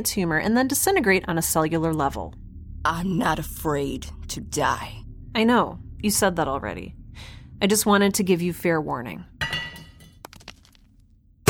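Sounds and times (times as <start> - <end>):
speech: 0.0 - 9.4
rubble being cleared away: 0.2 - 11.0.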